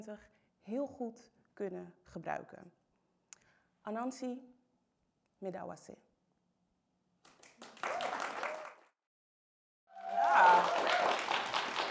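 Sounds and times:
speech: 0:00.0 - 0:02.8, 0:03.8 - 0:04.6, 0:05.4 - 0:06.1
audience applause: 0:07.4 - 0:08.9, 0:09.9 - 0:11.9.

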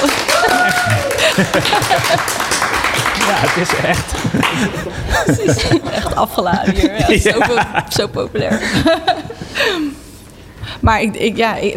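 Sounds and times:
people cheering: 0:00.0 - 0:05.5
live audience applause: 0:00.0 - 0:05.8
laughter: 0:00.0 - 0:09.9
speech: 0:01.4 - 0:02.5, 0:03.2 - 0:10.0, 0:10.6 - 0:11.7.

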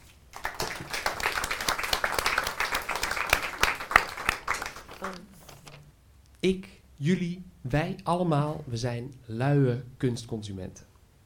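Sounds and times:
audience applause: 0:00.4 - 0:05.3
speech: 0:06.4 - 0:10.9.

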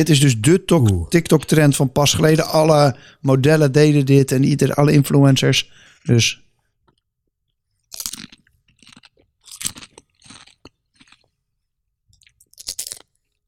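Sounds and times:
speech: 0:00.0 - 0:06.4
crunchy chewing of a croissant filled with Doritos and crème fraîche: 0:07.8 - 0:11.4, 0:12.1 - 0:13.4.

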